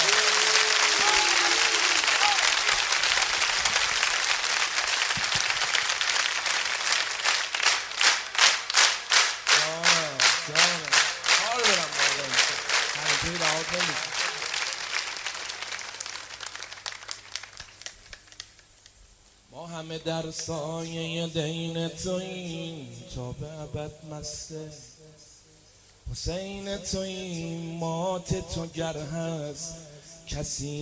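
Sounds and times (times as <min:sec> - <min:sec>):
crowd clapping along: 0:00.0 - 0:19.0
voice chanting a devotional song in Persian: 0:09.5 - 0:14.6, 0:19.5 - 0:25.4, 0:26.1 - 0:30.7
speech: 0:20.0 - 0:24.9, 0:26.2 - 0:30.7.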